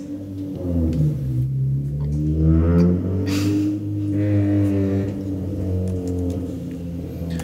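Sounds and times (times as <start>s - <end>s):
car driving past outside: 0.0s - 7.4s.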